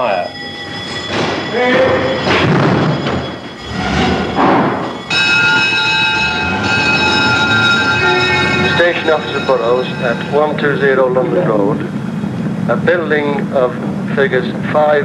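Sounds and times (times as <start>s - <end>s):
fire engine bells ringing: 0.0s - 15.0s
fire engines rumbling: 0.0s - 15.0s
fire engine multi-toned horn blaring: 0.8s - 11.8s
speech: 1.5s - 2.6s, 9.1s - 12.1s, 12.7s - 15.0s.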